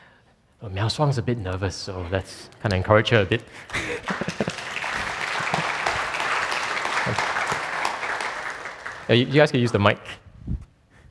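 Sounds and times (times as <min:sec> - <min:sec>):
speech: 0:00.6 - 0:04.3, 0:07.1 - 0:07.3, 0:09.1 - 0:10.6
laughter: 0:03.6 - 0:09.0
audience applause: 0:03.6 - 0:09.7.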